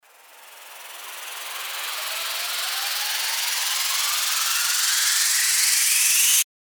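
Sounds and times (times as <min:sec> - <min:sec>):
riser sweep: 0:00.1 - 0:06.4.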